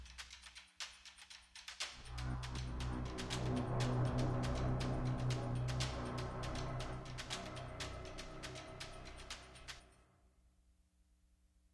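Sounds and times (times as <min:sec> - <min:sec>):
pulsing music bed: 0:01.8 - 0:09.8.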